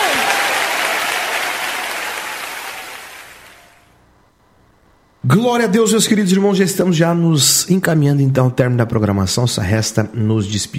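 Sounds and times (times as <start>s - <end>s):
audience applause: 0.0s - 3.9s
speech: 5.3s - 10.7s.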